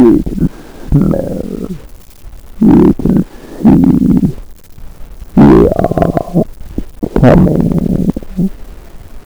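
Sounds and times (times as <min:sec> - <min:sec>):
alien sound: 0:00.0 - 0:01.8, 0:02.6 - 0:04.4, 0:05.4 - 0:08.5.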